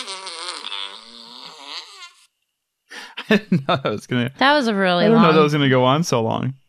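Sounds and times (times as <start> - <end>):
person making exaggerated voiced breathing noises: 2.9 - 3.3
laughter: 2.9 - 4.3, 5.0 - 5.9
speech: 3.3 - 6.6.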